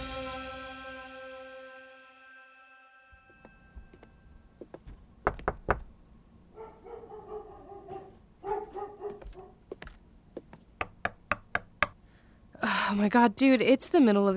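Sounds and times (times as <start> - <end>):
sharp raps on an apartment door: 5.2 - 5.9, 10.8 - 12.0
dog's drawn-out barks or whines: 6.5 - 9.6
speech: 12.9 - 14.3.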